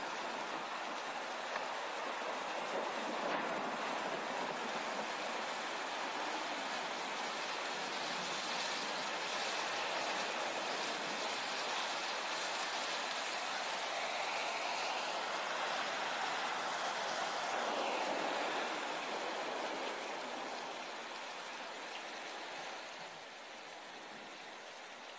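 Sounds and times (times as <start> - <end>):
rainstorm: 0.0 - 25.1.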